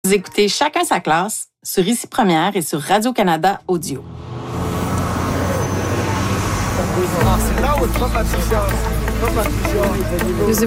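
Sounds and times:
speech: 0:00.1 - 0:04.6, 0:07.1 - 0:10.6
bus engine deep rumble: 0:03.6 - 0:10.6
busy city street traffic: 0:03.6 - 0:10.6
many voices chattering: 0:05.5 - 0:10.6.

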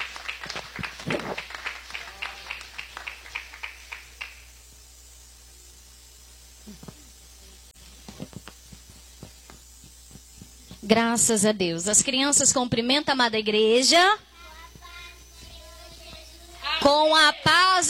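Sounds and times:
audience applauding: 0:00.0 - 0:04.4
speech: 0:10.9 - 0:14.3, 0:16.9 - 0:17.8.

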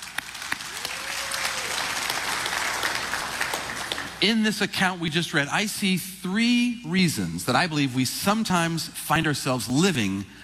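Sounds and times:
audience applauding: 0:00.0 - 0:04.3
speech: 0:04.2 - 0:10.4.

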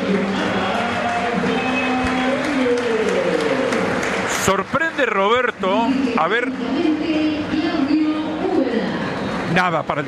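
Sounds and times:
large stadium crowd applauding a player: 0:00.0 - 0:06.8, 0:09.0 - 0:10.0
speech: 0:04.5 - 0:07.8, 0:09.5 - 0:10.0.

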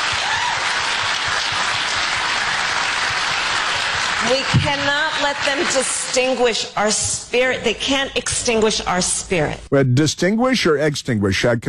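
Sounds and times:
audience clapping: 0:00.0 - 0:06.4
speech: 0:04.3 - 0:11.6.

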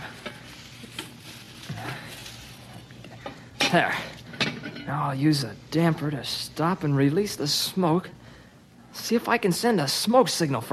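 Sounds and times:
leafy bush branches rustling and crackling being stuffed into a stove: 0:00.0 - 0:02.8
speech: 0:03.7 - 0:04.2, 0:04.9 - 0:08.2, 0:09.0 - 0:10.7.

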